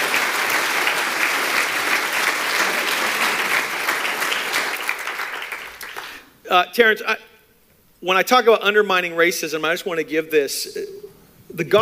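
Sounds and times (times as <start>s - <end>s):
congregation applauding in a church: 0.0s - 6.2s
speech: 6.5s - 7.3s, 8.0s - 11.8s.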